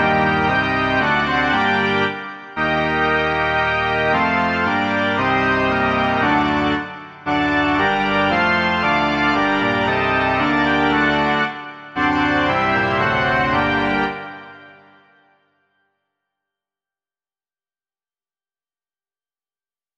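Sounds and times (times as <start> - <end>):
organ: 0.0 - 15.2.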